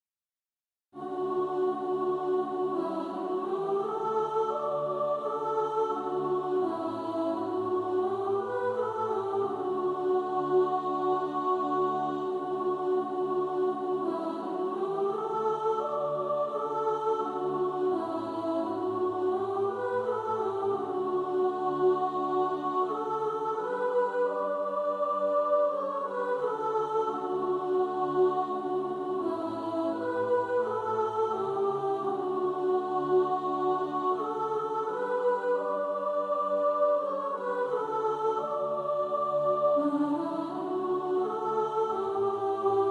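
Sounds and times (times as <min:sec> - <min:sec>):
soprano singing: 0:01.0 - 0:42.9.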